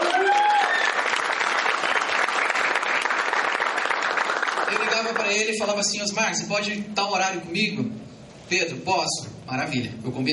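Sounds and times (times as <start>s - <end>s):
applause: 0.0s - 5.7s
speech: 5.3s - 10.3s.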